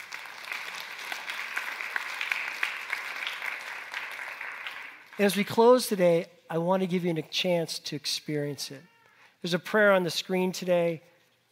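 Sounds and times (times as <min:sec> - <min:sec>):
audience clapping: 0:00.0 - 0:05.6
speech: 0:05.2 - 0:11.1.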